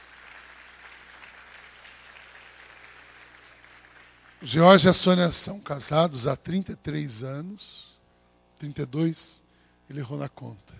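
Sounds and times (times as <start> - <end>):
audience applause: 0.0 - 4.9
speech: 4.4 - 7.9, 8.6 - 10.7.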